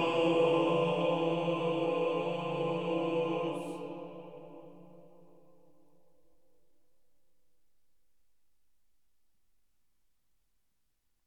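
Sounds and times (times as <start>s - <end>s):
sessional hymn in tone 5: 0.0s - 5.7s.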